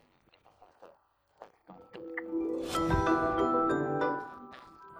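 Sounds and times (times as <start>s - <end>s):
musical instruments playing: 2.0s - 4.8s.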